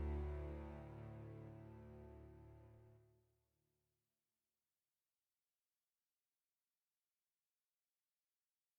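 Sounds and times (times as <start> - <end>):
music: 0.0 - 3.0.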